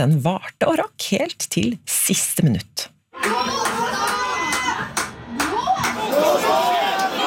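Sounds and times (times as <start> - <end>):
speech: 0.0 - 3.6
football fans shouting and clapping: 3.1 - 7.2.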